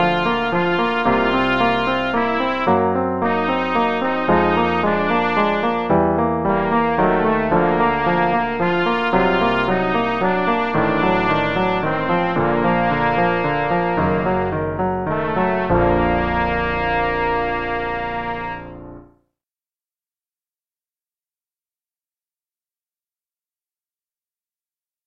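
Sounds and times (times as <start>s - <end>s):
trumpet playing: 0.0s - 19.1s.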